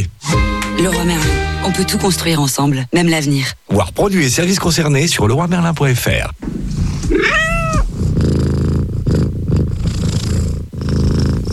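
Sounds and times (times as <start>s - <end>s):
speech: 0.8s - 7.4s
cat purring: 6.4s - 11.5s.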